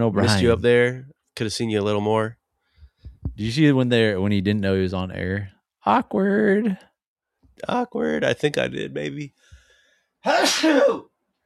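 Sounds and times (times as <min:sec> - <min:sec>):
speech: 0:00.0 - 0:02.4, 0:03.3 - 0:06.9, 0:07.6 - 0:09.4, 0:10.2 - 0:11.1
person sneezing: 0:10.3 - 0:11.1.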